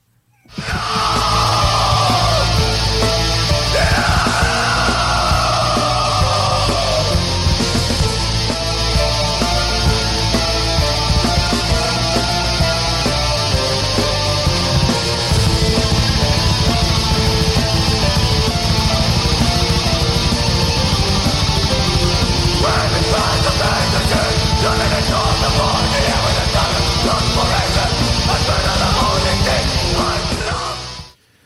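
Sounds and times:
harsh strained screaming vocals: 0.4s - 8.0s, 21.4s - 31.1s
relentless drumming: 0.5s - 30.7s
heavy metal song: 0.5s - 31.2s
thick distorted guitars: 0.5s - 31.2s.

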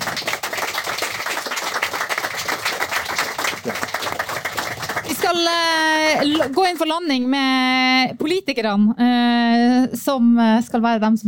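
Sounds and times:
audience applause: 0.0s - 6.7s
speech: 5.3s - 11.2s.

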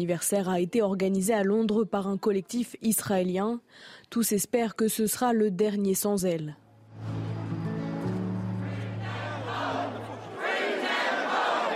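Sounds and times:
speech: 0.0s - 7.2s
crowd chanting in unison at a rally: 8.5s - 11.7s.

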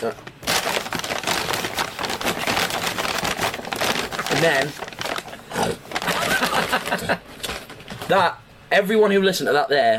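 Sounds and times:
speech: 0.0s - 0.3s, 4.4s - 4.8s, 6.9s - 7.5s, 8.1s - 9.9s
plastic bag crumpling: 0.4s - 8.1s.

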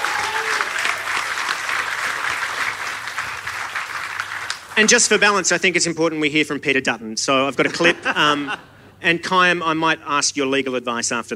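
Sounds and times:
audience applause: 0.0s - 5.3s
speech: 4.8s - 11.3s
laughter: 7.6s - 9.2s.

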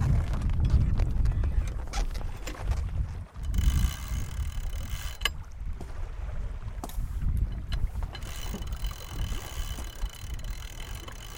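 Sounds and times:
steady low rumble of wind and water: 0.0s - 11.3s
clicks and rattles of rigging and winch on a sailboat: 3.4s - 5.4s, 7.5s - 11.3s.

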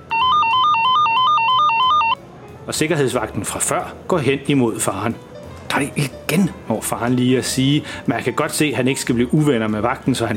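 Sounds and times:
electronic metal detector alarm at airport security: 0.1s - 2.2s
speech: 2.7s - 10.3s.

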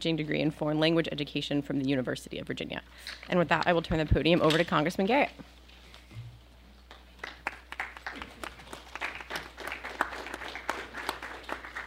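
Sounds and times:
speech: 0.0s - 5.6s
sparse underwhelming audience applause: 7.2s - 11.8s.

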